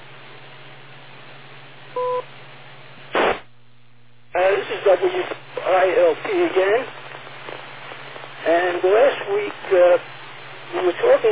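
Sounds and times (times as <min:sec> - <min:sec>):
two-tone radio beep: 0:02.0 - 0:02.3
brief loud burst of radio static: 0:02.8 - 0:03.6, 0:04.3 - 0:11.2
steady band-limited radio hiss: 0:02.9 - 0:03.5, 0:04.3 - 0:11.2
speech: 0:04.8 - 0:07.0, 0:08.8 - 0:10.1, 0:10.7 - 0:11.2.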